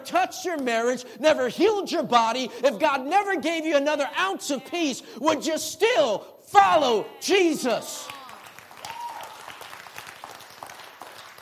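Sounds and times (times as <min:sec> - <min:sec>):
speech: 0:00.0 - 0:08.2
audience applause: 0:08.0 - 0:11.4.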